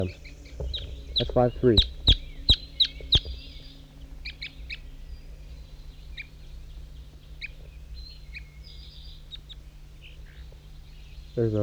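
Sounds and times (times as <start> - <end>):
speech: 0.0 - 0.3, 1.2 - 1.9, 11.4 - 11.6
crossbill calls: 0.0 - 11.6.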